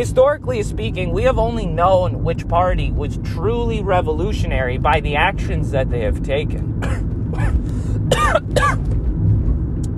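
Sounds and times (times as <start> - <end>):
speech: 0.0 - 7.5, 8.3 - 8.9
low steady hum: 0.0 - 9.9
person coughing after a drink went down the wrong pipe: 6.8 - 8.8.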